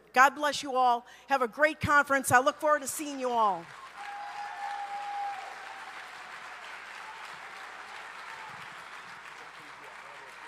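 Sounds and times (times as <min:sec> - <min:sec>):
speech: 0:00.2 - 0:03.8
audience applause after a speech: 0:03.6 - 0:10.4.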